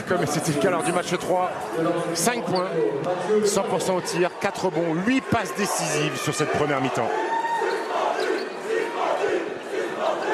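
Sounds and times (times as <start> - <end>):
speech: 0.1 - 7.4
Parisian fans chanting in arena: 3.8 - 10.3.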